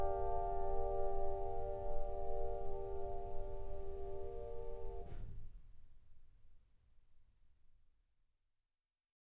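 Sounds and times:
zen meditation ambient background music: 0.0s - 5.2s.

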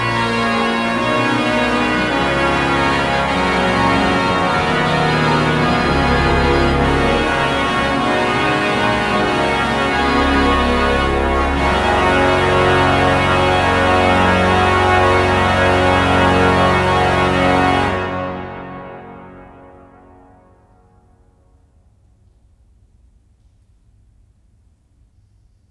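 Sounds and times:
pipe organ playing grands jeux registration: 0.0s - 20.4s.

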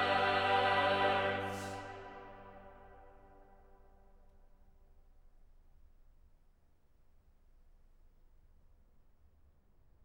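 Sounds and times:
cathedral choir singing: 0.0s - 3.4s.

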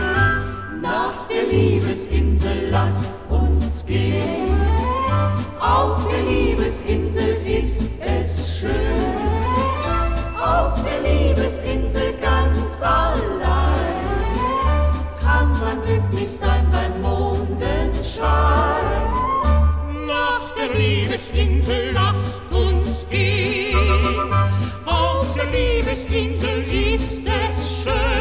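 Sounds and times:
operetta orchestra: 0.0s - 1.5s, 4.2s - 6.7s, 8.7s - 16.0s, 23.5s - 26.1s
choir: 0.0s - 28.2s.

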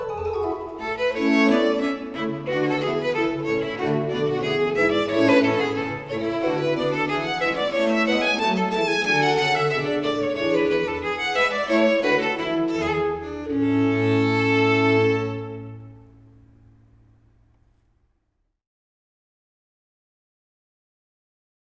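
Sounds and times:
string ensemble playing a concerto in D major: 0.2s - 16.3s.

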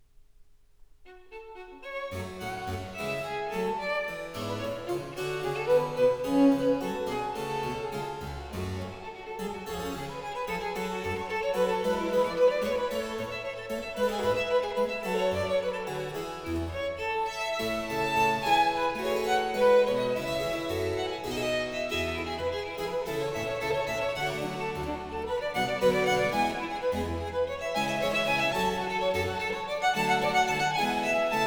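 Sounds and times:
fugue in C major: 1.1s - 31.4s.

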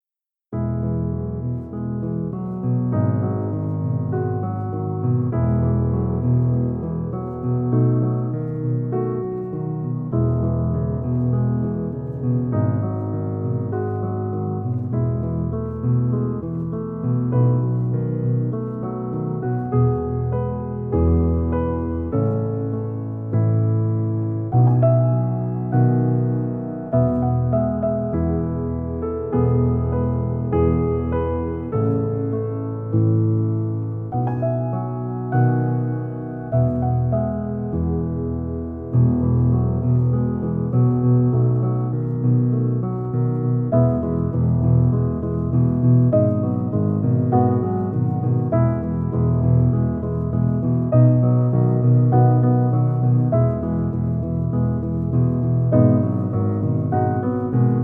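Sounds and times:
relaxing piano music: 0.5s - 57.8s.

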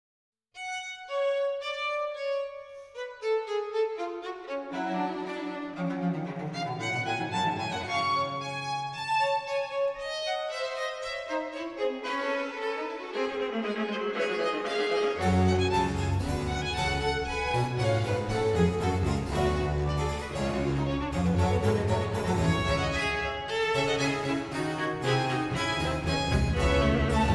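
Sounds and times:
string concerto in G minor: 0.7s - 27.3s.

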